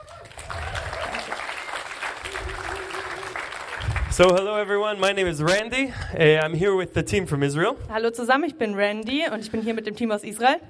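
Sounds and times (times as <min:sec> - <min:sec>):
audience applause: 0:00.0 - 0:05.2
speech: 0:04.2 - 0:10.6.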